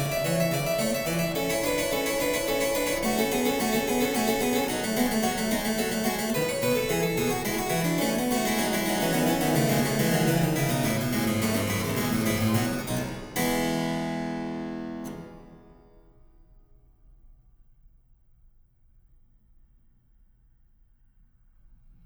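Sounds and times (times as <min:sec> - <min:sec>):
harpsichord invention: 0:00.0 - 0:15.6.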